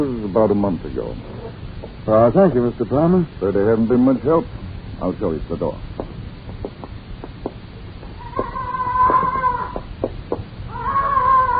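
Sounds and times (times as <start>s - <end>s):
speech: 0.0s - 1.3s, 2.0s - 5.9s
parrot squawking: 8.2s - 9.9s, 10.7s - 11.5s.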